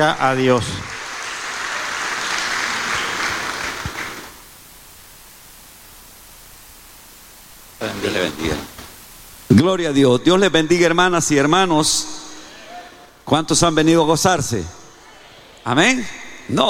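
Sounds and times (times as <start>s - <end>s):
speech: 0.0s - 0.9s, 7.8s - 8.7s, 9.5s - 12.2s, 13.3s - 14.8s, 15.6s - 16.6s
audience applause: 0.0s - 4.5s.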